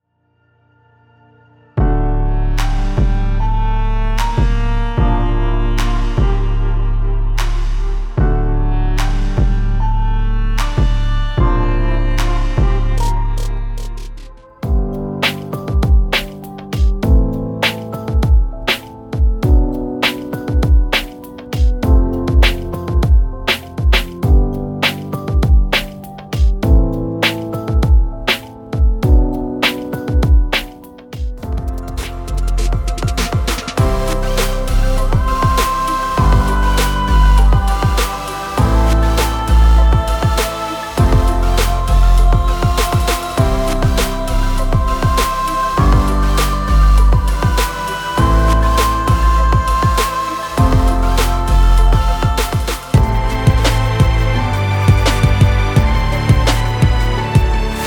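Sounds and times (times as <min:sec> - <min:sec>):
inspirational beats: 0:01.8 - 0:57.8.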